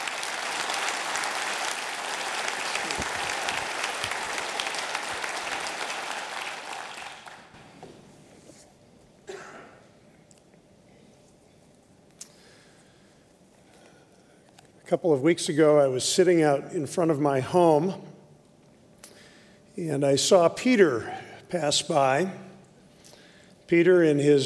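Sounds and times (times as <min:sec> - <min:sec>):
audience applause welcoming a guest speaker at Bethel Church: 0:00.0 - 0:07.6
speech: 0:14.9 - 0:18.1, 0:19.8 - 0:22.4, 0:23.7 - 0:24.4.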